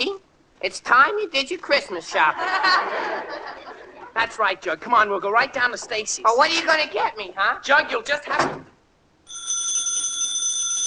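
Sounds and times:
speech: 0.0 - 3.6, 4.2 - 8.6
laughter: 2.0 - 4.4
telephone ringing: 9.2 - 10.8.

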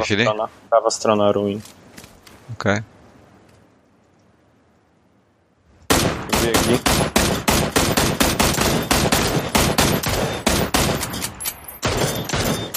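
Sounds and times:
speech: 0.0 - 1.8, 2.5 - 2.9, 6.4 - 7.1
video game gunfire: 5.9 - 11.1, 11.8 - 12.7.

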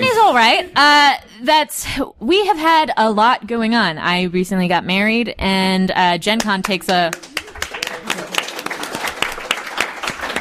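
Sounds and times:
speech: 0.3 - 7.3
audience slow clap applause: 6.4 - 10.3.

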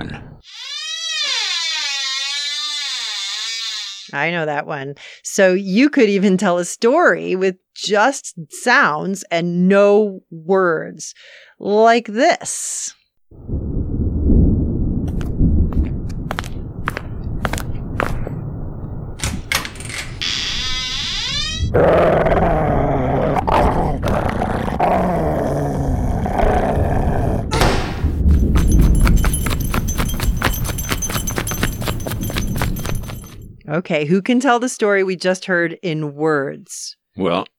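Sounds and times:
speech: 0.0 - 0.6, 4.1 - 13.6, 33.8 - 37.5
door opening slowly: 0.4 - 4.1, 15.0 - 24.5, 26.2 - 33.6
thunder: 13.3 - 20.8, 25.9 - 29.4
dog growling: 21.7 - 29.1.

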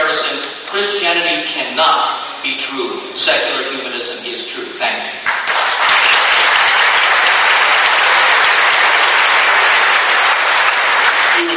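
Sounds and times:
speech: 0.8 - 5.7
audience applause: 5.3 - 11.5.

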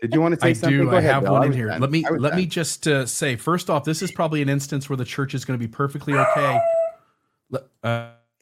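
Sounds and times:
speech: 0.0 - 6.8, 7.5 - 8.2
puppy barking: 6.1 - 7.0.

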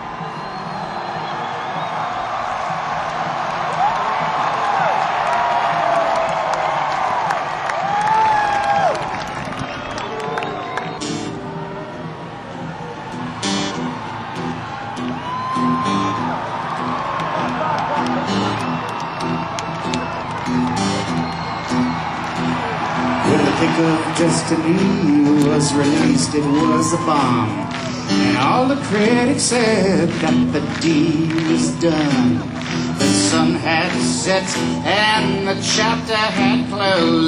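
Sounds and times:
festival crowd cheering wildly: 0.0 - 37.2
clapping: 2.9 - 11.2, 16.2 - 28.2, 29.6 - 34.8
speech: 24.6 - 27.6, 28.4 - 32.6, 33.8 - 37.2.

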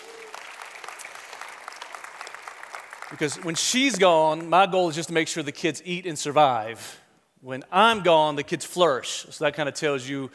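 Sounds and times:
audience applause: 0.0 - 4.4
speech: 3.1 - 10.3.

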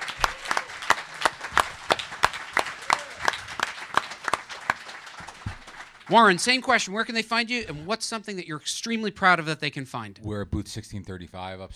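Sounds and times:
small group clapping: 0.0 - 8.2, 9.1 - 11.7
laughter: 0.0 - 11.7
speech: 6.1 - 11.7.

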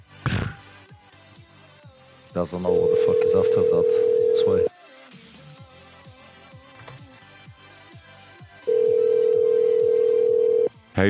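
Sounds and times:
speech: 2.4 - 4.7
ringback tone on an outgoing phone call: 2.7 - 4.7, 8.7 - 10.7.

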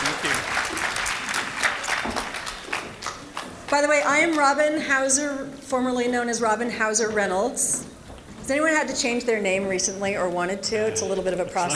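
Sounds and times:
audience applause for panelists coming on stage: 0.0 - 3.8
speech: 3.7 - 7.9, 8.5 - 11.7.

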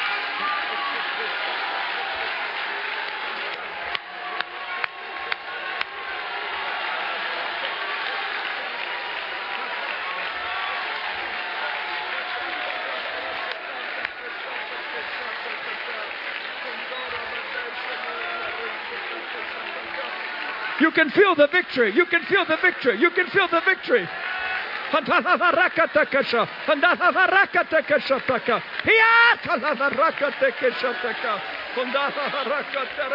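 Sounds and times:
crowd clapping and shouting: 0.0 - 33.1
speech: 20.9 - 24.2, 24.9 - 33.1
laughter: 24.9 - 33.1.

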